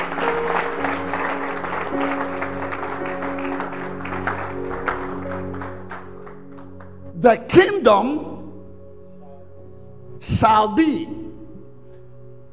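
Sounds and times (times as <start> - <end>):
audience clapping: 0.0 - 7.1
speech: 7.2 - 8.3, 10.4 - 11.2.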